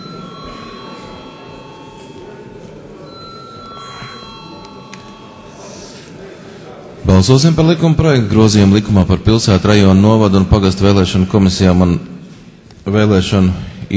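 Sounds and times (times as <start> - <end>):
bell ringing in the Latvian parliament chamber ahead of a vote: 0.0 - 6.3
low room noise: 0.0 - 13.9
speech: 7.2 - 12.1, 12.9 - 13.9.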